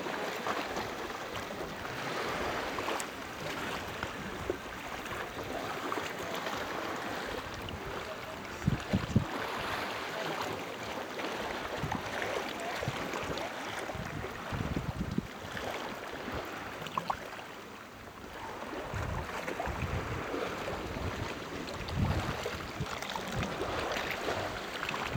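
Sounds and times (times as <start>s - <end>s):
beach ambience at Farangas Beach in Greece: 0.0s - 25.1s.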